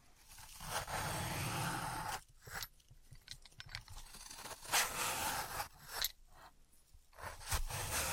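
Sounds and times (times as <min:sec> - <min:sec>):
floral foam being tapped, cut and crushed: 0:00.4 - 0:02.7, 0:04.0 - 0:06.6, 0:07.2 - 0:08.1.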